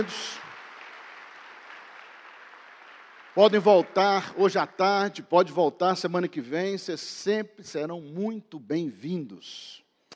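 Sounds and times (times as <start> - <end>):
speech: 0.0 - 0.4, 3.4 - 9.8
church congregation clapping to welcome visitors: 0.0 - 6.2.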